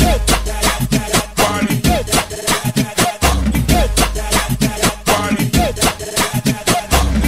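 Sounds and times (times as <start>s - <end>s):
Brazilian funk ringtone: 0.1s - 7.1s.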